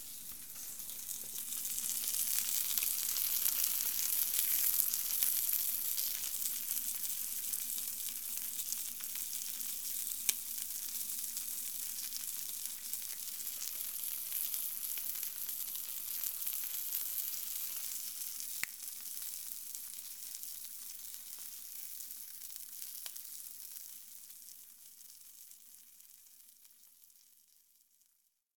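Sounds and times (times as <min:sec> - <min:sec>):
cooking sounds: 0:00.0 - 0:19.3.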